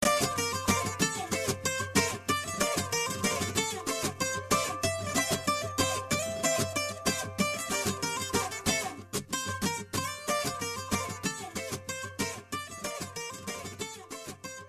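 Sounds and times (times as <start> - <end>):
sitar: 0.0 - 14.6.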